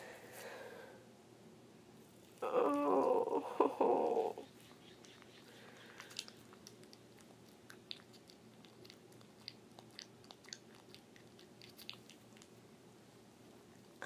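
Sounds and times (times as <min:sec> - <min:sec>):
moans: 0:02.4 - 0:04.4
squishy sounds: 0:04.9 - 0:12.6.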